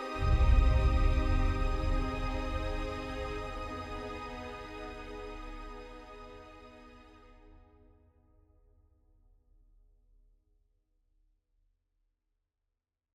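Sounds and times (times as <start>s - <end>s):
string instrument: 0.0s - 7.7s.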